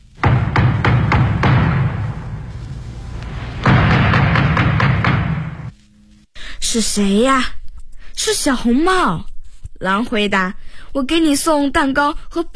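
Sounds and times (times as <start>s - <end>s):
heavy knocking on a door: 0.2s - 2.5s, 3.5s - 5.7s
speech: 6.7s - 7.6s, 8.2s - 12.5s.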